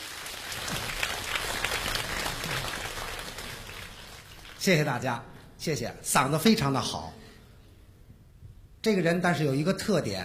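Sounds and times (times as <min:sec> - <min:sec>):
audience applause at a Chinese crosstalk comedy stage show: 0:00.0 - 0:04.7
speech: 0:04.6 - 0:07.2, 0:08.8 - 0:10.2.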